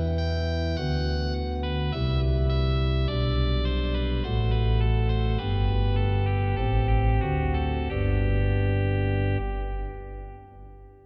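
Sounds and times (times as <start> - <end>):
short easy trumpet tune in G on organ trumpet stop: 0.0 - 10.6.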